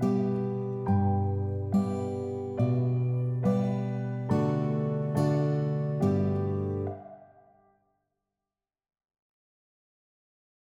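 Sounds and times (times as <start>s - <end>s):
guitar playing a German children's song: 0.0s - 7.2s.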